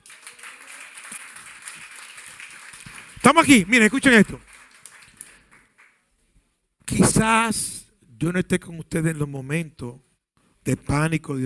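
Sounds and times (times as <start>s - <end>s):
audience applause: 0.0s - 6.0s
speech: 3.2s - 4.6s, 7.2s - 11.4s.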